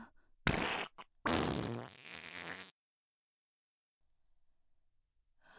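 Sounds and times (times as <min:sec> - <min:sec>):
short spluttering fart: 0:00.5 - 0:02.7.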